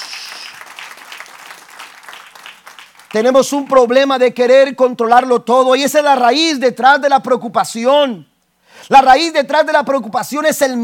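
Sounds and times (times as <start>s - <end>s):
audience applauding loudly: 0.0s - 3.6s
speech: 3.1s - 10.8s.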